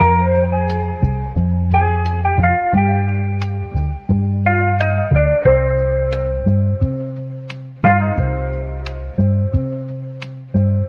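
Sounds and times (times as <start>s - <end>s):
guitar loops: 0.0s - 10.8s.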